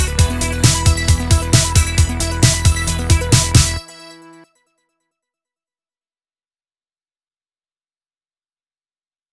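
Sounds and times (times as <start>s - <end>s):
off vocal instrumental music: 0.0s - 4.5s.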